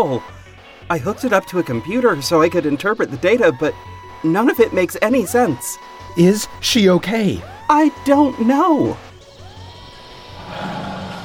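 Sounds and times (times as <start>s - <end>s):
speech: 0.0s - 9.1s
tiger roaring: 10.4s - 11.2s.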